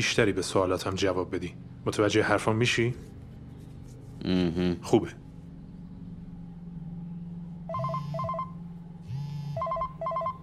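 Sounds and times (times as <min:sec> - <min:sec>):
speech: 0:00.0 - 0:03.1, 0:04.2 - 0:05.2
low steady hum: 0:00.0 - 0:10.4
telephone ringing with warbling electronic tones: 0:07.7 - 0:10.4.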